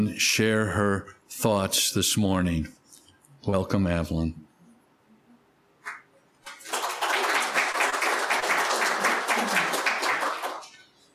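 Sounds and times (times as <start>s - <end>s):
speech: 0.0s - 2.8s, 3.4s - 4.5s
audience clapping: 5.8s - 10.8s.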